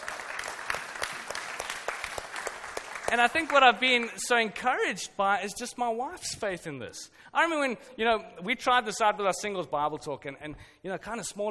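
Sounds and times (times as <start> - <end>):
church congregation applause: 0.0 - 3.6
speech: 3.1 - 11.5.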